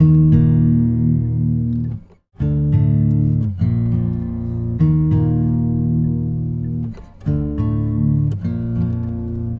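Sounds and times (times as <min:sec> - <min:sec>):
guitar: 0:00.0 - 0:09.5.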